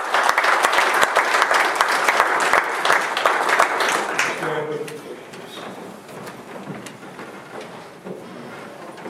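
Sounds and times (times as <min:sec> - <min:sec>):
audience applauding: 0:00.0 - 0:05.7.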